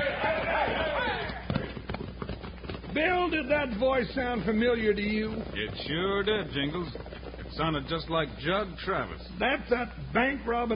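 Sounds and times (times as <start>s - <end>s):
horses galloping away in a Western drama: 0.0s - 10.7s
speech: 3.0s - 10.7s.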